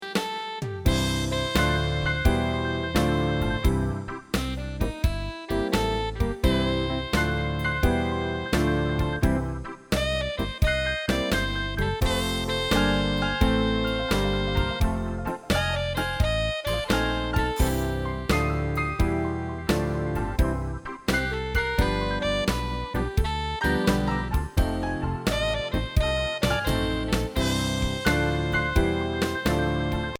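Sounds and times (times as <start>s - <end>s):
blues piano: 0.0s - 30.1s.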